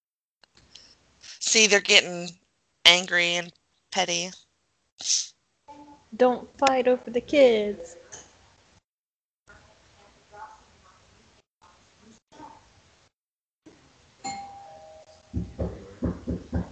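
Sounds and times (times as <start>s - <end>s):
speech: 1.5s - 4.4s, 5.0s - 5.3s, 6.2s - 8.0s
doorbell chime: 14.2s - 15.4s.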